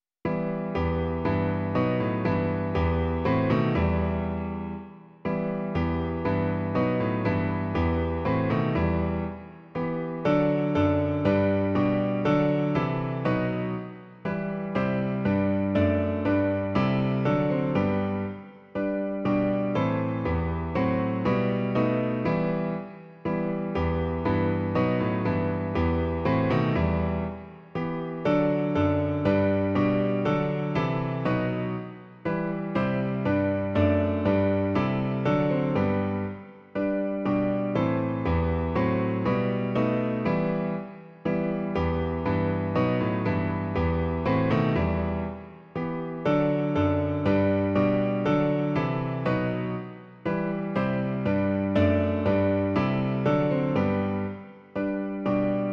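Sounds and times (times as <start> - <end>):
piano: 0.0 - 55.7.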